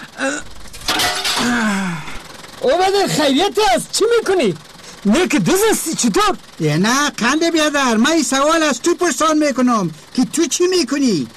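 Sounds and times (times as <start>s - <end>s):
glass smashed to wake a sleeping person: 0.6s - 1.7s
speech: 2.6s - 11.3s.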